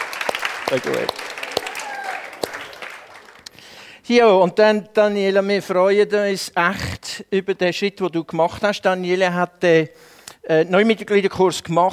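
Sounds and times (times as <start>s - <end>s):
audience clapping to congratulate a man on his birthday: 0.0s - 3.7s
speech: 0.7s - 1.2s, 4.1s - 11.9s.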